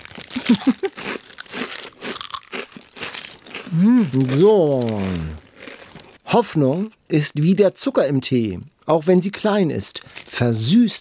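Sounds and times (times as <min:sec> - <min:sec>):
crunchy food being eaten noisily: 0:00.0 - 0:06.2
speech: 0:03.8 - 0:05.4, 0:06.3 - 0:10.9.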